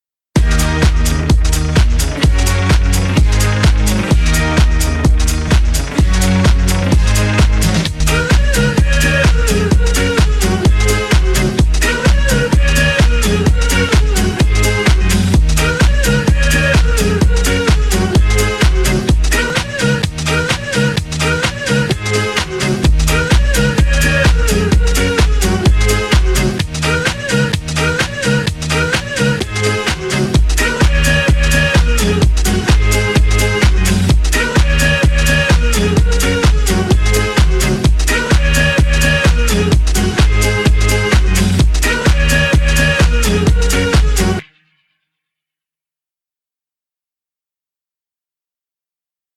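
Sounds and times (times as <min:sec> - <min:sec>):
goal song music: 0:00.4 - 0:44.5.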